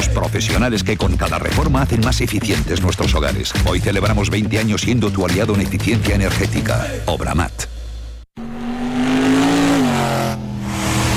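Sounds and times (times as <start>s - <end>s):
speech: 0.1s - 7.8s
car engine revving: 7.7s - 11.1s.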